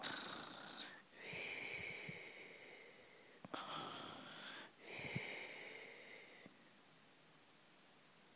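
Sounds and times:
person snoring: 0.0 - 5.8.

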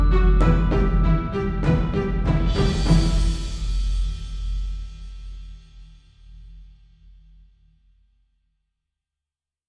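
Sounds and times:
creepy cave music: 0.0 - 4.3.

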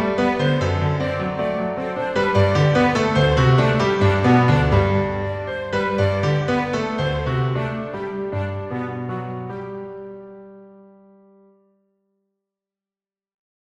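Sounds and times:
orchestral arrangement: 0.0 - 10.5.

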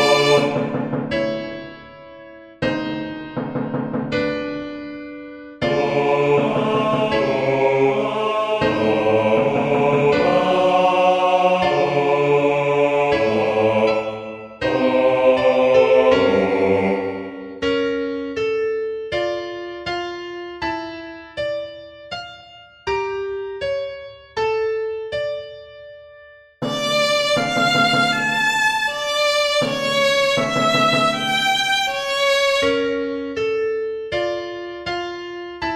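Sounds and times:
violin: 0.0 - 0.9, 26.6 - 33.4
classical piano: 0.0 - 35.7.

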